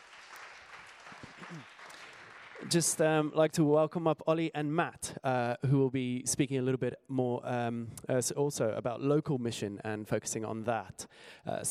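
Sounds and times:
audience applause: 0.0s - 3.2s
speech: 1.5s - 1.8s, 2.6s - 11.6s.

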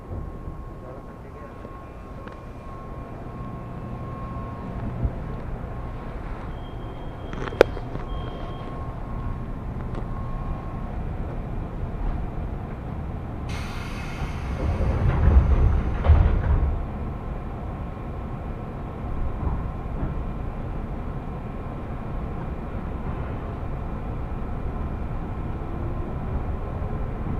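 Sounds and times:
faint tone: 0.0s - 11.1s
Japanese commuter line train rumble: 0.0s - 27.3s
bright hiss: 13.5s - 15.0s.

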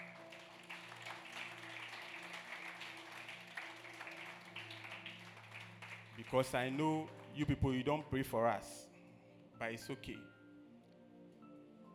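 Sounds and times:
audience applause: 0.0s - 7.4s
speech: 6.2s - 8.8s, 9.6s - 10.4s.

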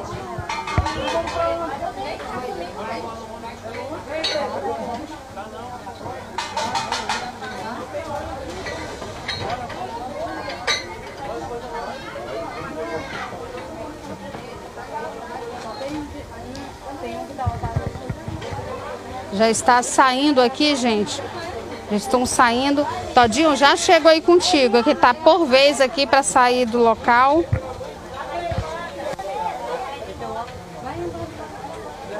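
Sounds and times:
crowd murmuring at a funeral procession: 0.0s - 32.1s
speech: 1.2s - 7.0s, 19.3s - 27.6s.

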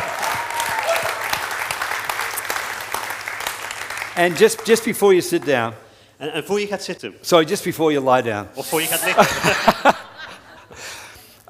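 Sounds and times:
audience applause: 0.0s - 4.9s
speech: 4.2s - 10.0s
laughter: 8.8s - 10.9s.

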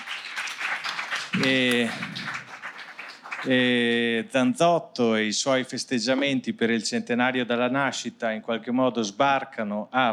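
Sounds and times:
audience applause: 0.0s - 3.8s
speech: 1.4s - 2.2s, 3.4s - 10.1s.

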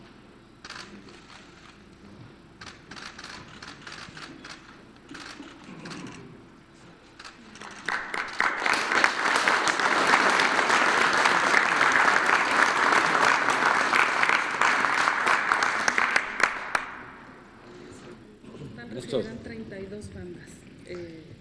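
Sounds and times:
murmur of voices: 0.6s - 21.3s
crowd applauding: 7.2s - 17.2s.

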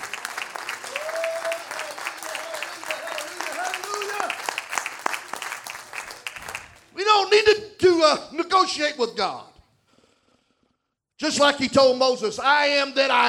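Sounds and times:
people clapping hands: 0.0s - 7.0s
speech: 7.2s - 9.5s, 11.2s - 13.2s.

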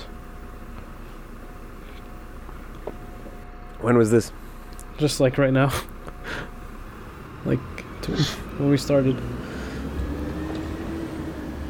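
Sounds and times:
heavy bus engine rumbling: 0.0s - 11.6s
speech: 3.8s - 4.4s, 5.0s - 6.4s, 7.4s - 9.5s.

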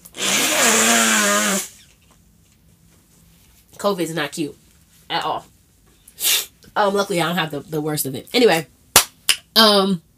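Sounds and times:
nose blowing: 0.0s - 1.9s
speech: 3.8s - 5.5s, 6.2s - 8.8s, 9.6s - 10.1s.

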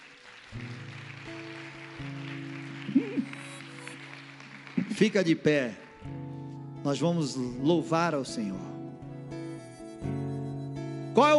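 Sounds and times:
audience applauding: 0.0s - 6.5s
speech: 5.0s - 5.8s, 6.8s - 8.7s, 11.2s - 11.3s.

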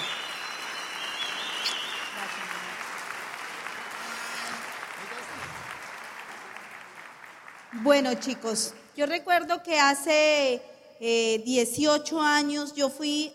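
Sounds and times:
loud audience applause: 0.0s - 8.4s
speech: 7.8s - 13.3s.

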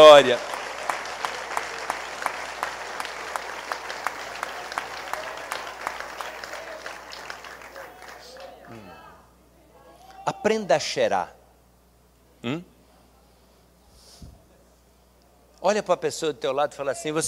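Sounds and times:
speech: 0.0s - 0.6s, 10.4s - 11.4s, 12.4s - 12.7s, 15.6s - 17.2s
loud audience applause: 0.0s - 8.8s.

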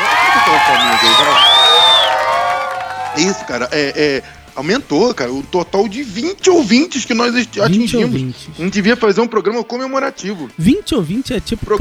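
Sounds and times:
applause: 0.0s - 4.9s
cheering: 0.0s - 10.6s
laughter: 0.0s - 11.7s
speech: 3.2s - 11.7s.

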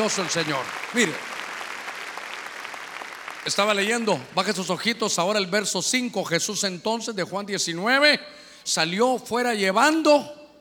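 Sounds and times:
speech: 0.0s - 1.4s, 3.4s - 10.4s
audience clapping: 0.0s - 4.8s.

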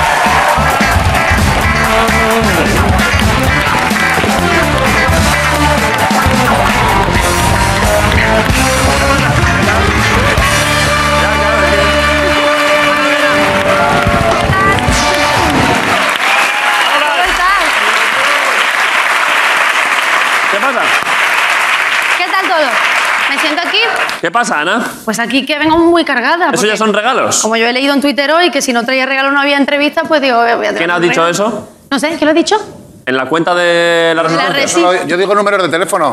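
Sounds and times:
music playing: 0.0s - 16.3s
audience clapping: 0.0s - 24.2s
speech: 24.2s - 36.1s.

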